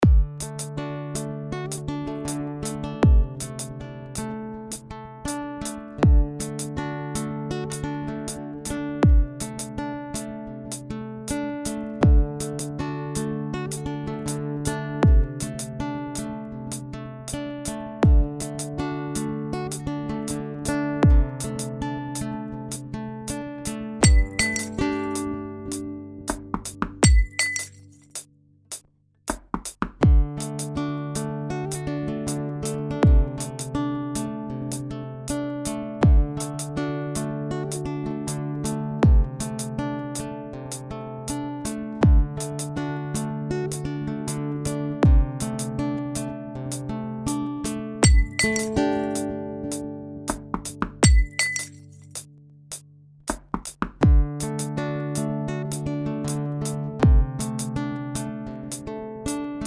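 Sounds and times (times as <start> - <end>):
guitar: 0.0 - 28.8, 29.9 - 53.0, 53.8 - 59.6.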